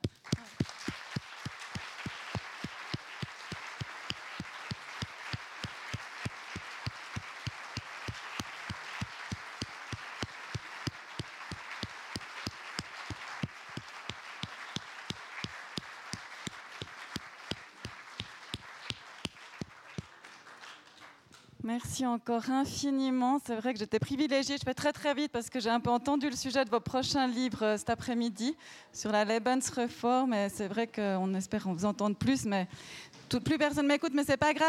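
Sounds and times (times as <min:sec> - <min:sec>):
applause: 0:00.0 - 0:21.5
speech: 0:21.7 - 0:34.6.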